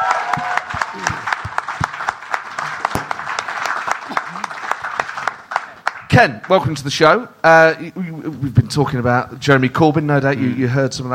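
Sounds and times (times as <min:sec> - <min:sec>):
audience applause at a live show greeting a band leaving the stage: 0:00.0 - 0:06.6
speech: 0:06.2 - 0:11.1.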